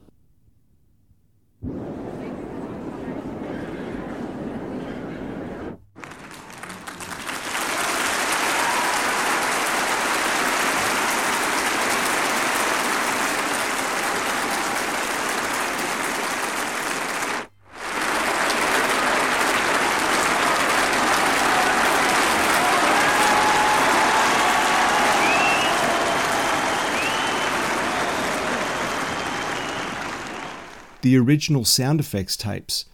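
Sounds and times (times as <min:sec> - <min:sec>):
large concert crowd applauding on an album recording: 0:06.0 - 0:31.0
speech: 0:31.0 - 0:32.9.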